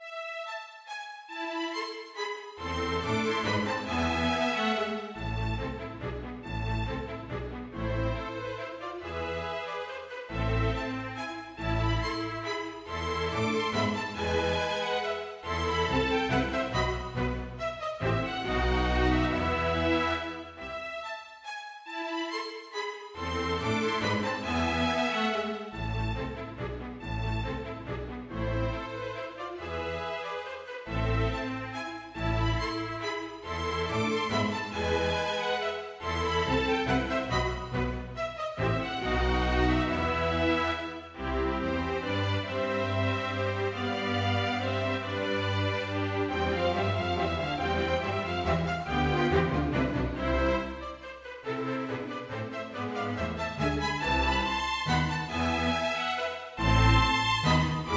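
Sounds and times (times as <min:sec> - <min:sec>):
minuet for string quartet in orchestral version with bass: 0:00.0 - 0:57.9.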